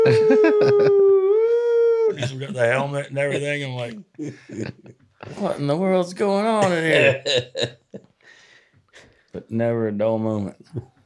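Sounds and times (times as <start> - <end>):
laughter: 0.0 - 1.2, 2.0 - 5.6, 6.6 - 8.1
voice imitating a siren: 0.0 - 2.4
choppy vocal bursts: 0.0 - 4.9, 6.6 - 7.4
speech: 2.6 - 8.1, 9.4 - 10.9.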